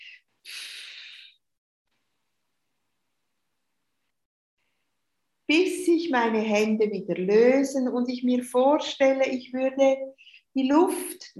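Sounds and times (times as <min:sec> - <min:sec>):
deep audible exhale during a breathing relaxation exercise: 0:00.0 - 0:01.4
speech: 0:05.5 - 0:11.3.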